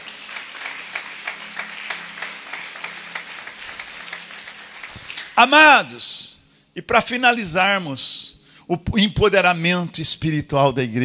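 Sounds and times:
applause: 0.0s - 6.0s
speech: 5.4s - 11.0s.

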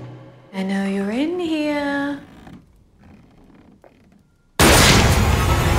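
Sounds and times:
people talking: 0.5s - 2.3s
gunshot in the film Ready or Not: 4.6s - 5.7s.

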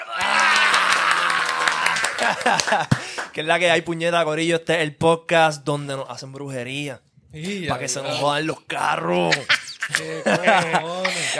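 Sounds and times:
laughter: 0.0s - 3.1s, 9.2s - 11.3s
applause and clapping: 0.0s - 3.5s
speech: 2.2s - 11.3s.

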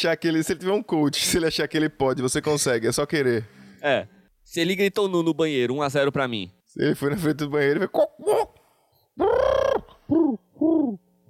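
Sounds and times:
speech: 0.0s - 8.6s
person imitating a chicken: 8.0s - 8.6s, 9.2s - 11.1s.

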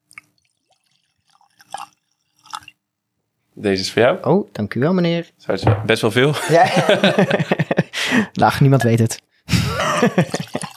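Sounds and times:
whisky being poured into glasses: 0.1s - 2.8s, 10.3s - 10.7s
speech: 3.6s - 7.6s, 8.2s - 9.2s, 10.0s - 10.7s
laughter: 6.3s - 8.0s, 9.5s - 10.7s.

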